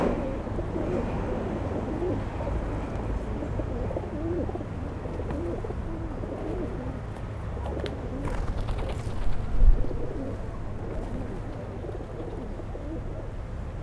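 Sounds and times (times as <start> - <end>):
pigeons cooing: 0.2 - 13.6
pigeon wing flutters and taps: 7.8 - 11.8
steady rumble: 8.2 - 11.8.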